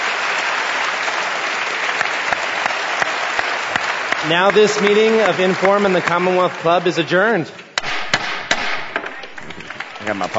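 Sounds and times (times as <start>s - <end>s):
audience applause: 0.0s - 7.4s, 9.1s - 10.3s
speech: 4.2s - 7.6s, 10.1s - 10.3s.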